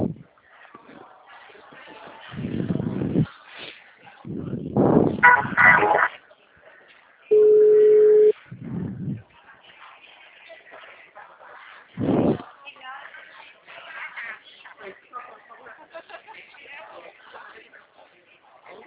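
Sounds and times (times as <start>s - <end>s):
people talking: 0.8s - 6.2s, 9.8s - 18.8s
telephone tone while a call is transferred: 5.2s - 6.0s, 7.3s - 8.3s.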